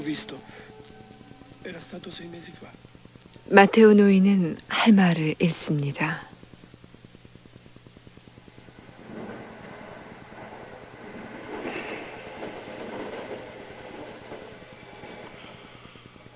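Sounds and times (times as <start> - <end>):
speech: 0.0 - 0.7, 1.6 - 2.8, 3.4 - 6.3
train running on rails: 0.0 - 2.7, 8.5 - 16.3.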